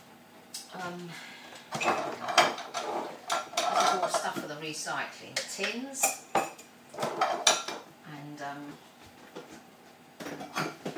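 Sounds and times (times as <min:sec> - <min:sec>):
speech: 0:00.7 - 0:02.3, 0:03.9 - 0:06.4
clean dishes and dog bowls clattering as they are put away: 0:01.7 - 0:04.4, 0:06.0 - 0:07.9, 0:10.2 - 0:10.9
crockery knocking and scraping: 0:01.7 - 0:04.5, 0:05.6 - 0:07.9, 0:10.2 - 0:10.9.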